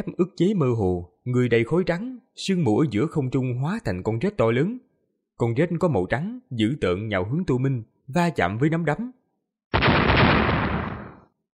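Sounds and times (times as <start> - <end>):
speech: 0.0 - 9.8
loud booming explosion: 9.8 - 11.3.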